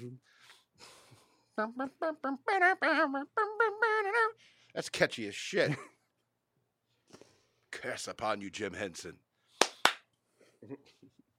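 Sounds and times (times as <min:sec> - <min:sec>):
speech: 0:01.6 - 0:06.0, 0:07.8 - 0:09.2, 0:10.6 - 0:11.2
hand clap: 0:09.6 - 0:10.1.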